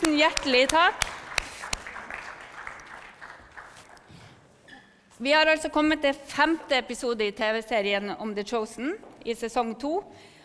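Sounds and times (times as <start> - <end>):
speech: 0.0 - 1.1, 5.2 - 10.3
audience clapping: 0.0 - 4.2.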